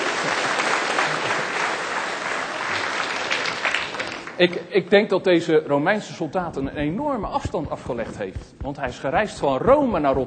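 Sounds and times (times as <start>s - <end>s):
thunderous audience applause: 0.0s - 4.4s
speech: 4.4s - 10.2s.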